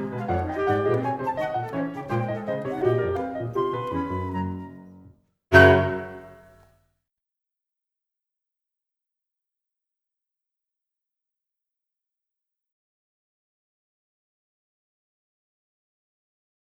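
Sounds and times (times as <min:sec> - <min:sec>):
jazz music: 0:00.0 - 0:06.5.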